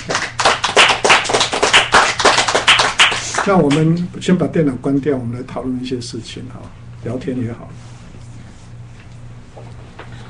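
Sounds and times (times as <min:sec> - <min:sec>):
hand clapping: 0:00.0 - 0:04.1
speech: 0:03.4 - 0:07.9.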